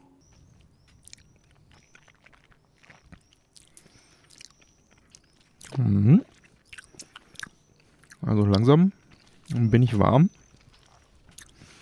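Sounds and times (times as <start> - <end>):
someone sipping a blended malt whisky from the Highlands and Speyside: 1.0 - 8.6
speech: 5.8 - 6.3, 8.4 - 10.4.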